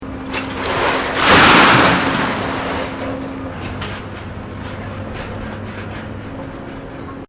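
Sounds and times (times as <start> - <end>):
industrial scrap metal dropping: 0.3 - 4.1.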